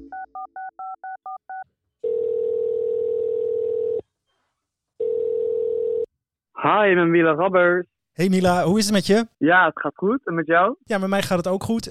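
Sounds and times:
long steady telephone ringing tones: 0.0s - 4.0s, 5.0s - 6.1s
speech: 6.6s - 11.8s.

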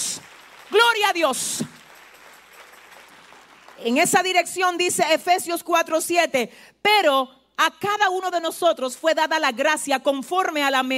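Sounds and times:
audience applauding: 0.0s - 3.8s
speech: 1.0s - 1.8s, 3.8s - 10.9s.

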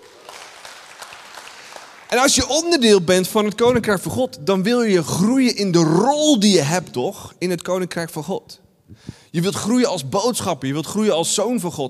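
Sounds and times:
audience applause: 0.0s - 2.6s
speech: 2.1s - 11.8s.

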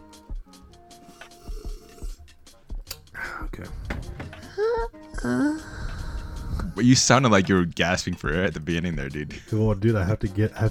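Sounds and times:
person sipping a drink: 1.0s - 2.2s
speech: 3.4s - 3.8s, 4.6s - 5.6s, 6.8s - 10.7s.

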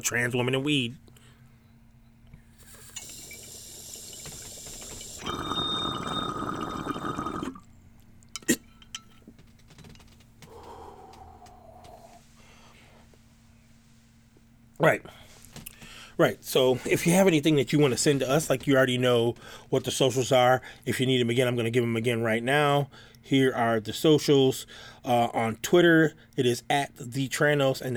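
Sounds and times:
speech: 0.0s - 1.1s, 16.2s - 27.9s
soft airy hiss: 2.5s - 5.2s
loud steady water bubbling: 2.6s - 7.6s.

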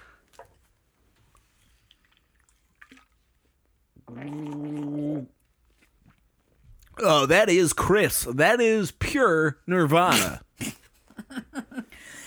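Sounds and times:
person gargling liquid: 4.0s - 5.4s, 10.1s - 10.7s
speech: 7.1s - 10.7s.

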